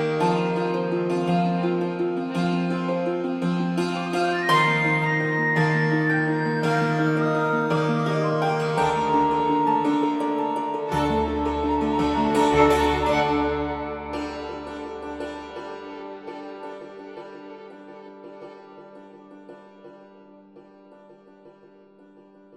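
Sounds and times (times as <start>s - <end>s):
jig tune: 0.0s - 16.3s.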